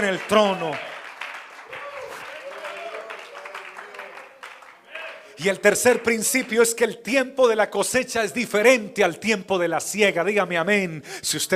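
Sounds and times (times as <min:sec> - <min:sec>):
speech: 0:00.0 - 0:00.9, 0:05.4 - 0:11.5
audience applause: 0:00.0 - 0:06.6.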